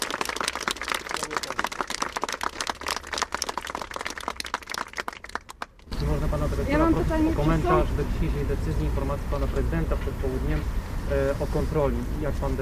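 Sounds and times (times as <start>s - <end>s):
crowd applauding: 0.0s - 5.9s
speech: 6.3s - 12.6s.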